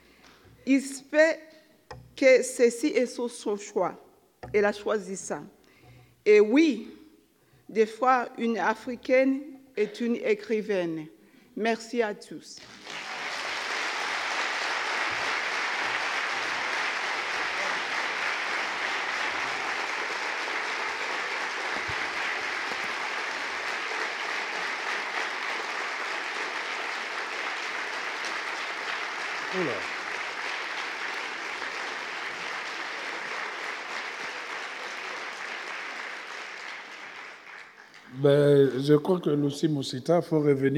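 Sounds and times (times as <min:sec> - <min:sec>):
speech: 0:00.7 - 0:01.5, 0:02.2 - 0:05.6, 0:06.2 - 0:07.0, 0:07.7 - 0:12.9, 0:38.2 - 0:40.7
audience ovation at a French-language literary event: 0:12.6 - 0:38.1.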